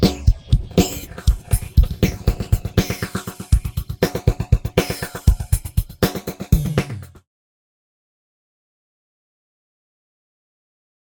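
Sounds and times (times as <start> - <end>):
drums with interpolation, delay and phaser effects: 0.0 - 7.2.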